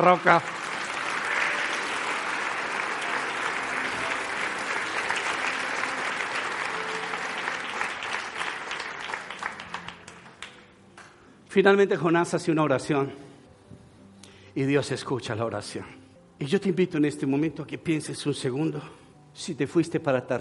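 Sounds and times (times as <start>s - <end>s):
speech: 0.0s - 0.6s, 11.6s - 13.3s, 14.6s - 20.3s
audience applause: 0.0s - 10.6s.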